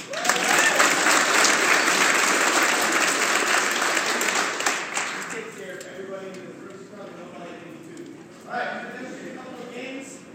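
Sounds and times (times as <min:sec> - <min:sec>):
audience applause: 0:00.0 - 0:05.5.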